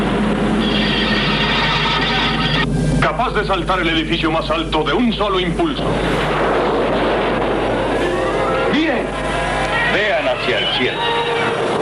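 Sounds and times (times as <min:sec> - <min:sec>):
locomotive sound effect rumbling roar: 0:00.0 - 0:11.8
speech: 0:03.2 - 0:06.5, 0:10.4 - 0:11.4.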